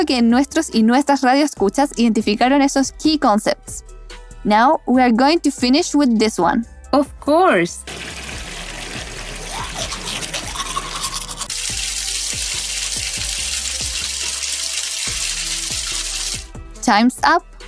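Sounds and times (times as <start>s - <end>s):
speech: 0.0s - 8.2s, 16.9s - 17.5s
water running from an open tap: 7.9s - 16.6s.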